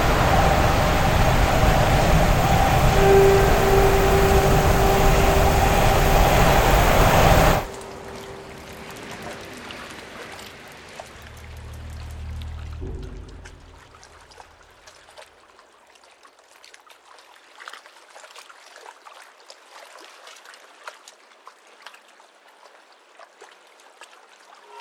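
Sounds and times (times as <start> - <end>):
binaural soundscape: 0.0 - 14.7.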